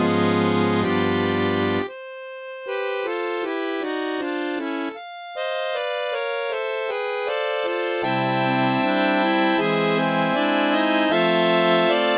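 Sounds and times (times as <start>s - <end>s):
synthesized harmonica: 0.0s - 12.1s.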